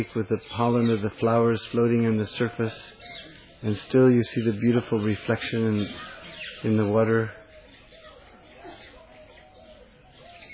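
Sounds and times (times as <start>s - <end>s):
speech: 0.0s - 7.4s
birds singing: 0.0s - 10.5s
dove cooing: 2.4s - 3.6s, 4.2s - 10.5s.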